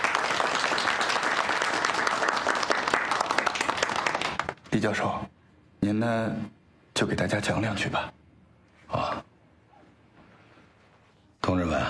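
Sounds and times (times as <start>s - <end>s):
applause: 0.0s - 4.7s
speech: 4.8s - 8.2s.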